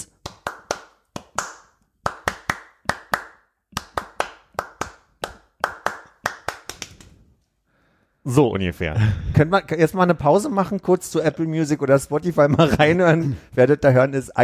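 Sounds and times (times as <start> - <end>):
rhythmic hand clapping: 0.0 - 7.2
speech: 8.2 - 14.4
laughter: 12.4 - 13.5.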